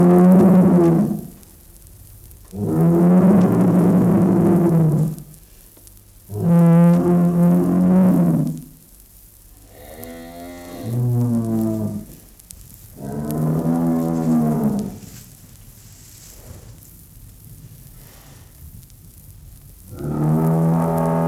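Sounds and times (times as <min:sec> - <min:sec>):
bull mooing: 0:00.0 - 0:01.3, 0:02.5 - 0:05.3, 0:06.3 - 0:08.6, 0:09.6 - 0:12.2, 0:12.9 - 0:15.2, 0:19.9 - 0:21.2.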